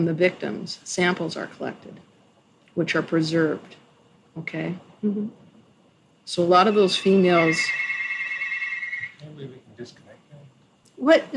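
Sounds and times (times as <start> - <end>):
speech: 0.0 - 2.1, 2.8 - 3.8, 4.4 - 5.4, 6.3 - 8.0, 9.2 - 10.0, 11.0 - 11.3
telephone ringing: 6.6 - 9.2.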